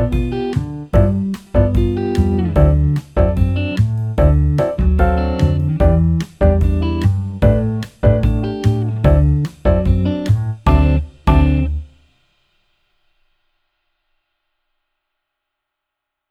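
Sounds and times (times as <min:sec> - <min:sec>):
piano: 0:00.0 - 0:11.8.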